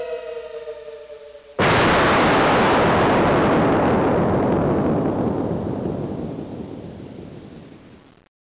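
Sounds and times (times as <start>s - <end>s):
bomb exploding: 1.6s - 8.1s.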